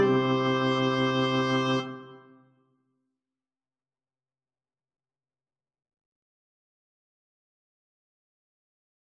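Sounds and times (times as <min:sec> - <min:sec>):
oboe melody: 0:00.0 - 0:02.4.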